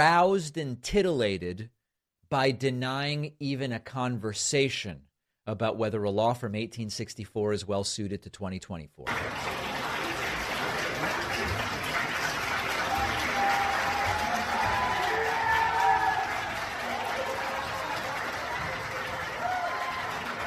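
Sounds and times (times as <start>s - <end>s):
speech: 0.0s - 9.7s
crowd cheering and applauding: 9.1s - 20.4s.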